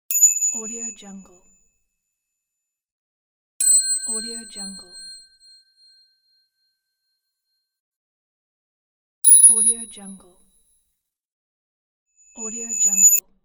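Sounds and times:
ding: 0.1s - 1.0s, 3.6s - 7.8s, 9.3s - 10.2s, 12.4s - 13.2s.

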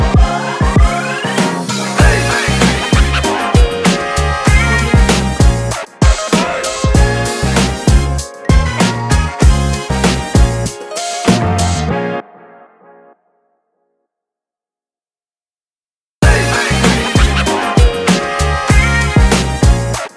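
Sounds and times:
urban hip hop intro logo: 0.1s - 11.9s, 16.2s - 20.1s.

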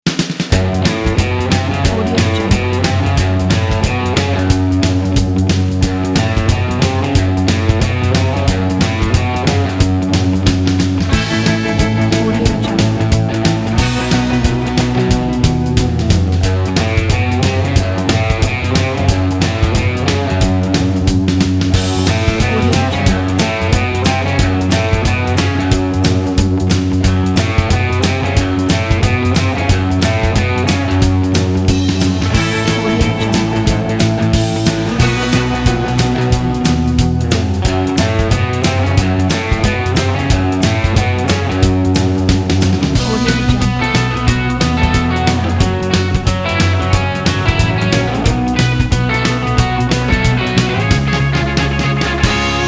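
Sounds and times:
rockabilly surf music: 0.0s - 52.6s.

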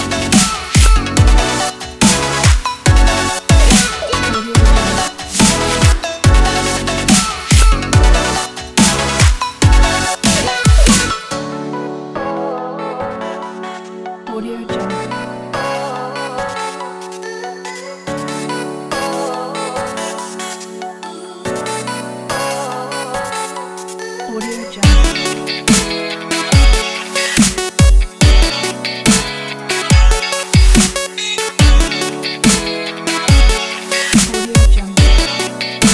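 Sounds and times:
summer future bass pop funk music: 0.0s - 11.4s, 21.6s - 35.9s.

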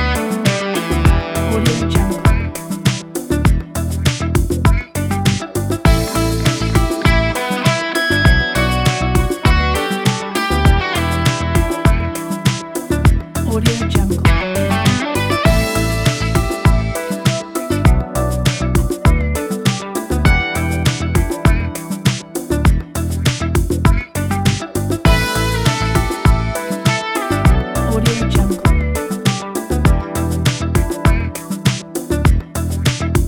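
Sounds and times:
contemporary smooth jazz music: 0.0s - 33.2s.

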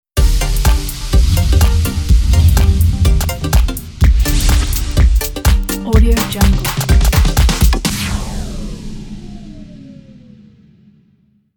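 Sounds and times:
dance music logo jingle: 0.2s - 7.9s.

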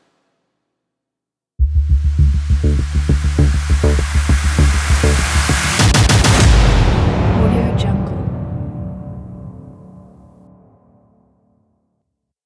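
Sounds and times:
dubstep action trailer music: 1.6s - 10.0s.

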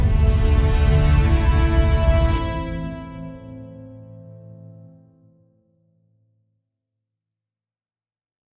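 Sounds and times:
epic cinematic ident music: 0.0s - 4.8s.

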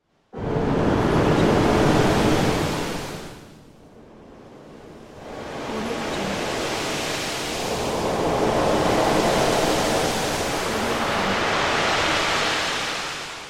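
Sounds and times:
ship in rough sea: 0.0s - 13.4s.

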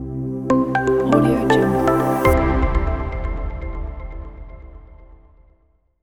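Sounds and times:
corporate logo jingle: 0.5s - 3.0s.

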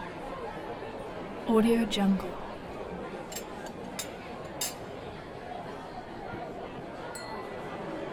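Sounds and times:
restaurant ambience: 1.6s - 5.2s, 7.2s - 8.1s.

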